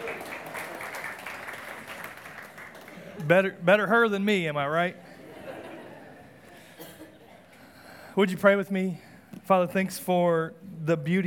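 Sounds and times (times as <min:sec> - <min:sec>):
audience clapping: 0:00.0 - 0:03.5
speech: 0:03.2 - 0:05.0, 0:08.2 - 0:11.2
laughter: 0:05.1 - 0:07.4.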